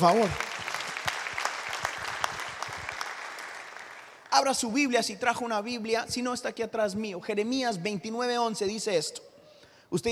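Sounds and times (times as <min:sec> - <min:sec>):
speech: 0:00.0 - 0:00.5, 0:04.4 - 0:09.3, 0:09.9 - 0:10.1
audience applauding: 0:00.0 - 0:04.3.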